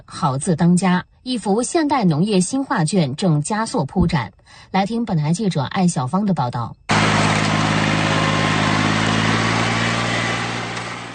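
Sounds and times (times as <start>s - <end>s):
speech: 0.1s - 6.8s
rice transplanting machine engine roaring in a paddy field at Nanniwan: 6.9s - 11.1s.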